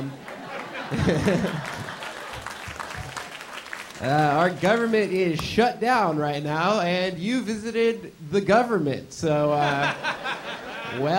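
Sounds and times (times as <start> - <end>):
laughter: 0.0 - 3.3, 9.4 - 11.1
audience clapping for tourists: 0.0 - 5.6
speech: 0.9 - 1.8, 4.0 - 11.1.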